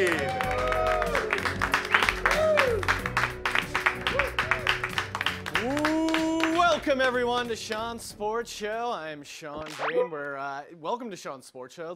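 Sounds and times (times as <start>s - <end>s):
audience vocal cheers: 0.0s - 3.1s, 4.0s - 4.9s, 5.6s - 6.7s
audience clapping for the host's entrance on a late-night sports comedy show: 0.0s - 7.9s
speech: 6.9s - 11.9s.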